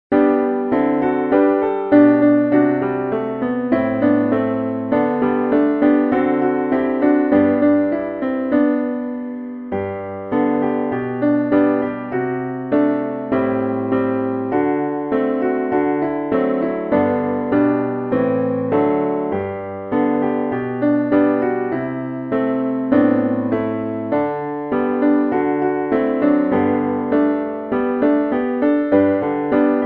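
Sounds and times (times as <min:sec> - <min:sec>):
piano: 0:00.0 - 0:29.8.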